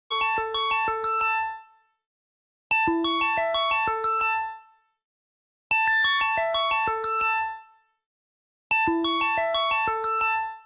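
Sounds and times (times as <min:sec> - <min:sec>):
ringtone: 0:00.1 - 0:01.9, 0:02.7 - 0:04.9, 0:05.7 - 0:08.0, 0:08.7 - 0:10.6.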